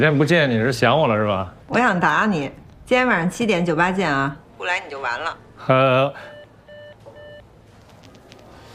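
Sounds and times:
speech: 0.0s - 6.3s
low hum: 0.0s - 8.7s
phone hang-up beeps: 6.2s - 7.4s.

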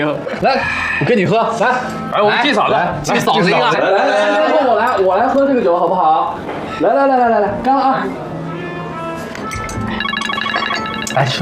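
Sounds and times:
speech: 0.0s - 8.2s, 11.2s - 11.3s
steady tonal background: 9.6s - 11.3s
telephone ringing at a dinner table gathering: 9.8s - 11.3s.

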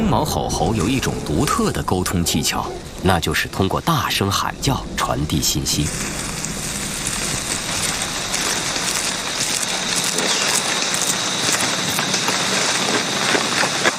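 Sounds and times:
rain falling in rainforest: 0.0s - 13.9s
speech: 0.1s - 6.3s.

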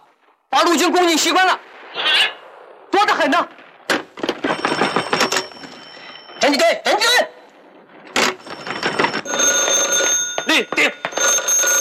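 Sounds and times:
speech: 0.6s - 2.4s, 3.2s - 3.6s, 6.4s - 7.4s, 10.6s - 11.0s
telephone ringing with a high electronic tone: 4.2s - 6.6s, 8.0s - 11.7s.

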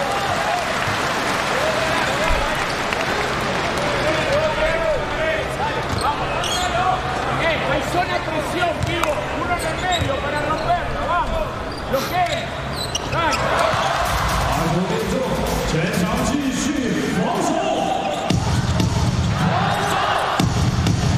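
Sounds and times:
audience applause: 0.0s - 4.5s
crowd noise: 0.0s - 21.1s.

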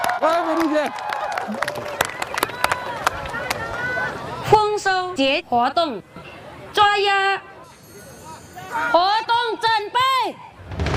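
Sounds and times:
audience applause: 0.0s - 4.1s
speech: 0.2s - 2.0s, 5.2s - 6.2s, 6.8s - 7.5s, 8.7s - 10.5s.

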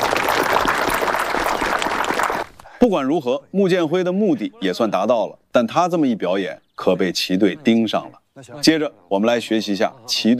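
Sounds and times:
audience applause at a lecture: 0.0s - 2.6s
speech: 2.8s - 10.3s.

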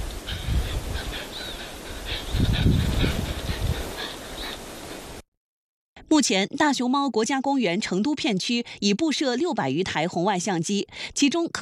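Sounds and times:
female snow leopard panting: 0.3s - 4.5s
speech: 6.1s - 11.6s.

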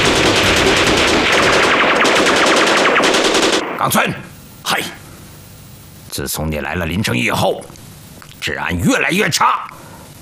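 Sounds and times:
automatic gunfire: 0.0s - 3.8s
speech: 3.9s - 4.3s, 6.2s - 7.8s, 8.4s - 9.8s.

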